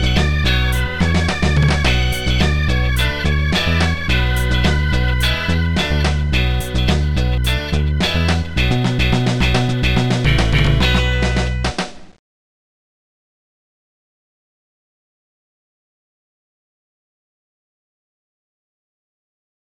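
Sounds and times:
jazz music: 0.7 - 11.8.

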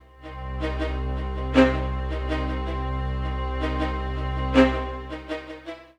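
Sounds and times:
strings: 0.0 - 5.9.

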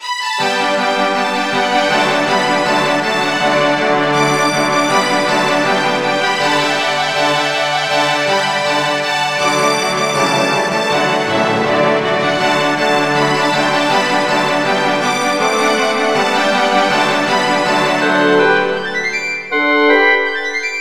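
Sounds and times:
dim flute: 0.0 - 20.7.

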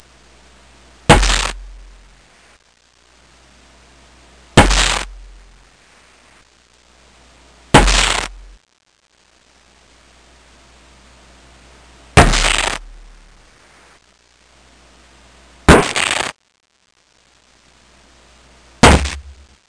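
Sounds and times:
thumps: 4.6 - 5.2, 7.7 - 8.4, 12.2 - 13.0, 15.7 - 16.3, 18.8 - 19.6.

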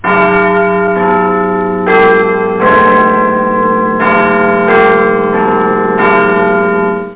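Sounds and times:
Big Ben clock tower bell chiming: 0.0 - 7.1.

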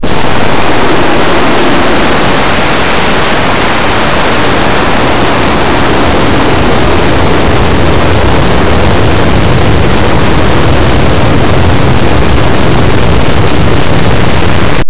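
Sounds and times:
plane: 0.0 - 14.8.

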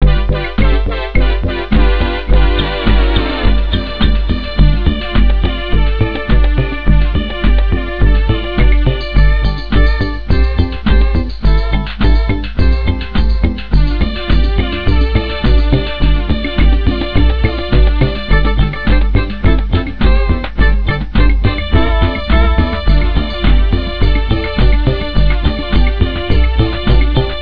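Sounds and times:
disco funk music: 0.0 - 27.4.

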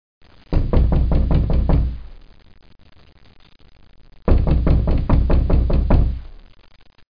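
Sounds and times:
knocking: 0.6 - 2.1, 4.3 - 6.3.

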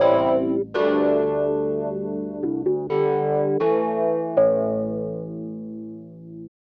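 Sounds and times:
organ house music at 125 BPM in A: 0.0 - 4.7.

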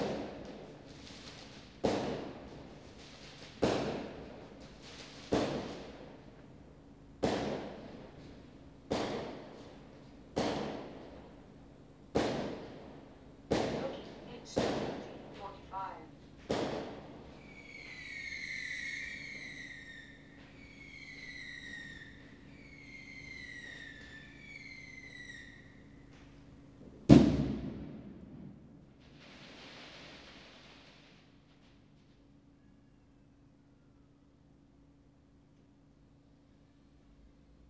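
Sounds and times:
fireworks: 0.0 - 6.5, 7.2 - 11.5, 12.1 - 25.8, 27.1 - 32.2.

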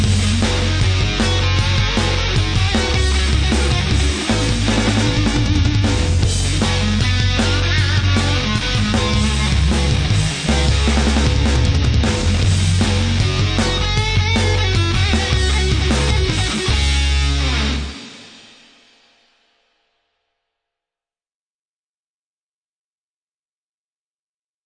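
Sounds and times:
medium guitar: 0.0 - 18.7.

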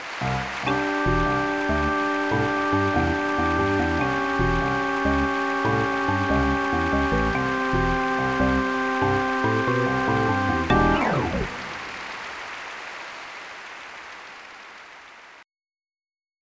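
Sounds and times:
percussive organ: 0.2 - 12.0.

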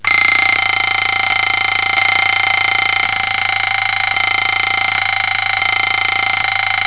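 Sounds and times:
alarm clock ringing: 0.0 - 6.8.

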